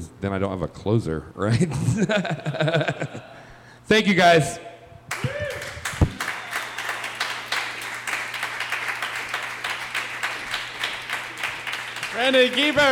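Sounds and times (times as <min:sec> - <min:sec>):
speech: 0:00.2 - 0:03.3, 0:03.9 - 0:04.6, 0:12.3 - 0:12.9
laughter: 0:01.5 - 0:03.5
audience clapping: 0:05.1 - 0:12.9.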